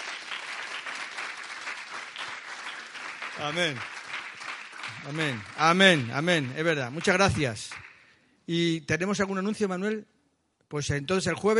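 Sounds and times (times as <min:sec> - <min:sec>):
audience applauding: 0:00.0 - 0:08.2
speech: 0:03.4 - 0:04.0, 0:05.0 - 0:07.8, 0:08.5 - 0:10.1, 0:10.7 - 0:11.5.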